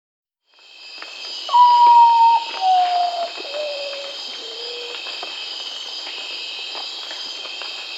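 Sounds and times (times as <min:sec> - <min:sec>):
common potoo Nyctibius griseus calling with whistled notes: 0:01.5 - 0:05.0.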